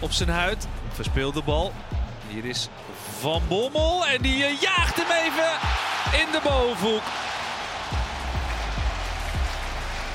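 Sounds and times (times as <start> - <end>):
speech: 0.0 - 7.3
applause: 5.0 - 10.1.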